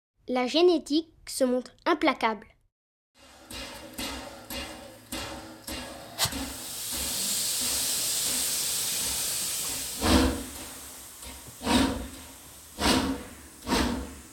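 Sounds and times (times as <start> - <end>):
speech: 0.3 - 2.5
train clacking running from Lyon toward Chambéry: 3.4 - 14.3
steady loud hiss of a train: 6.2 - 14.3.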